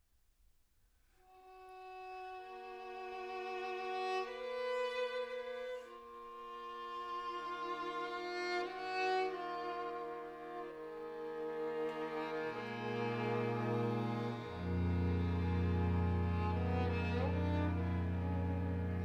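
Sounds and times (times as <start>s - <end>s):
string quartet playing: 2.3s - 19.0s.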